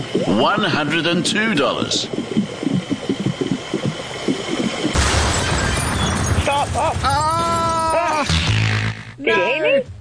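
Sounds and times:
rapid rhythmic mechanical pumping: 0.0s - 7.3s
speech: 0.1s - 2.5s, 6.7s - 8.4s, 9.2s - 9.9s
game show explosion boom effect: 4.8s - 7.3s.

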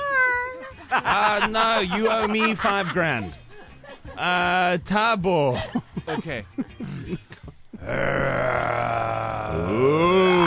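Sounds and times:
laughter: 0.6s - 4.5s, 5.5s - 8.1s
speech: 1.0s - 3.4s, 4.2s - 7.2s
lion roaring and growling: 7.8s - 10.4s.

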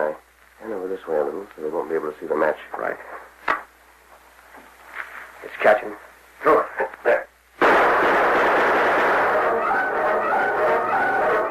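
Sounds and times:
speech: 1.0s - 3.3s, 5.4s - 7.2s
gunfire from outlaws in a radio drama: 7.6s - 10.7s.

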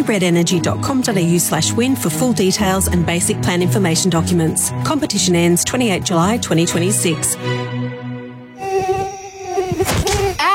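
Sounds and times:
speech: 0.0s - 8.1s
mosquito buzzing: 8.4s - 10.5s.

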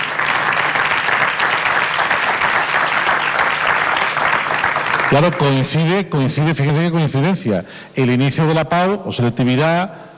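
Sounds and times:
audience applause: 0.0s - 5.7s
speech: 5.1s - 10.1s.

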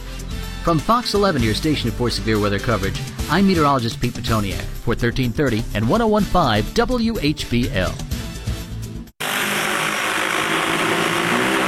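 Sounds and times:
speech: 0.7s - 8.0s
agricultural spraying drone flying: 9.2s - 11.6s.

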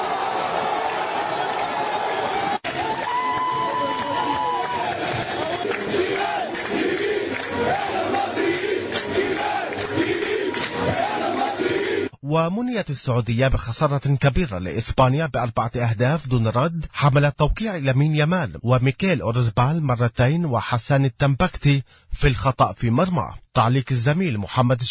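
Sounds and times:
Egyptian football fans roaring and chanting after the match: 0.0s - 12.2s
speech: 12.4s - 24.9s.

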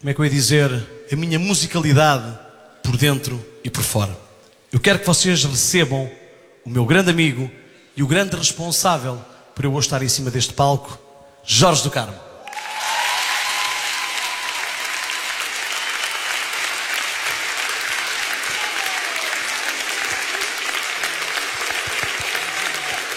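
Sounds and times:
speech: 0.0s - 12.3s
audience applause at a concert: 12.5s - 23.1s.

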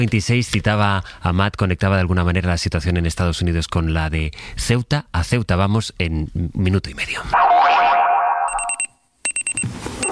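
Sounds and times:
speech: 0.0s - 7.8s
alarm clock ringing: 8.4s - 8.9s.

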